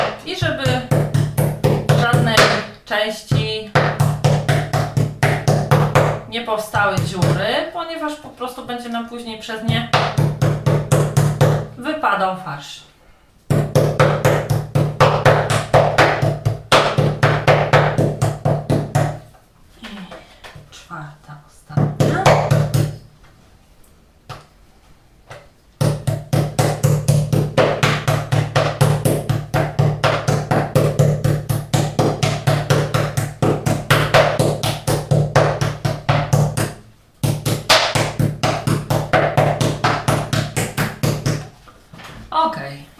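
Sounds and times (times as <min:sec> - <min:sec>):
meat portions pounded flat with a mallet for roulades: 0:00.0 - 0:02.7, 0:03.7 - 0:06.2, 0:09.7 - 0:11.7, 0:13.5 - 0:19.2, 0:21.8 - 0:23.0, 0:25.8 - 0:41.4
speech: 0:02.9 - 0:03.8, 0:06.3 - 0:10.3, 0:11.8 - 0:12.9.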